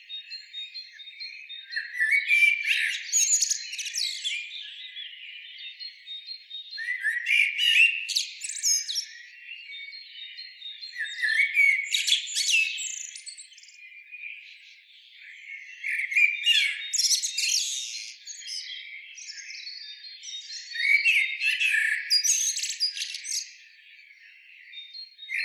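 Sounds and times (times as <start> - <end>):
common blackbird Turdus merula singing: 0.0 - 25.4.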